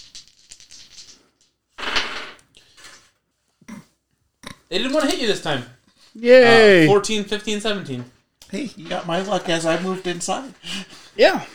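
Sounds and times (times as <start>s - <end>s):
dice rattling across a hard surface: 0.0s - 1.2s
speech: 4.7s - 11.5s.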